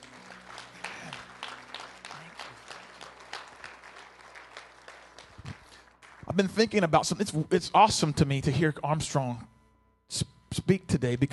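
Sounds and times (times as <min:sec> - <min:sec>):
audience hand clapping: 0:00.0 - 0:06.9
speech: 0:06.4 - 0:09.5, 0:10.6 - 0:11.3.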